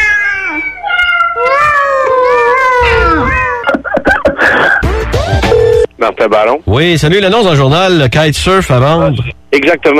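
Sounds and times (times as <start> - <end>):
cats meowing: 0.0 - 3.8
laughter: 3.6 - 4.9
speech: 6.2 - 9.9.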